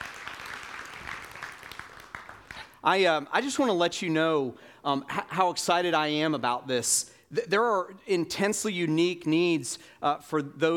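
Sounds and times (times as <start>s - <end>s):
audience applause: 0.0s - 2.8s
speech: 2.8s - 10.7s.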